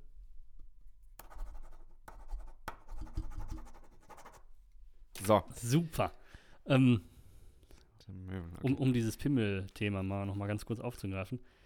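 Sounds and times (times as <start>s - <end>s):
writing sounds, pen scratching: 1.2s - 4.5s
speech: 5.2s - 7.1s, 8.1s - 11.6s.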